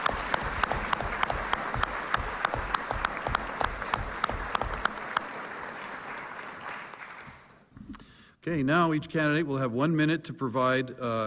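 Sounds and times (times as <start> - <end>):
audience applause for candidates: 0.0 - 7.7
speech: 8.5 - 11.2.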